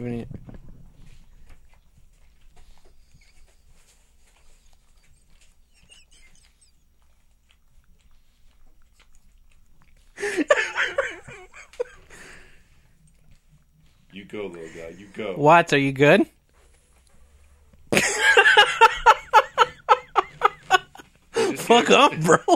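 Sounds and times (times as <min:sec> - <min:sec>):
speech: 0:00.0 - 0:00.4, 0:14.3 - 0:16.4, 0:21.7 - 0:22.5
dog licking and slurping at itself: 0:00.4 - 0:22.5
brief louder burst of voice or laughter: 0:18.0 - 0:22.5.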